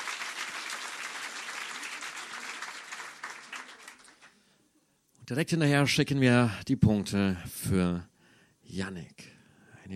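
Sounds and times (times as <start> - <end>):
audience applause: 0.0 - 4.4
speech: 5.3 - 8.1, 8.7 - 9.9.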